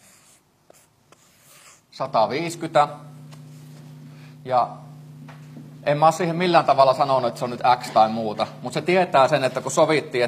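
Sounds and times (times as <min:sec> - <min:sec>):
pen writing on paper: 0:00.0 - 0:01.8
speech: 0:02.0 - 0:03.1, 0:04.4 - 0:04.9, 0:05.8 - 0:10.2.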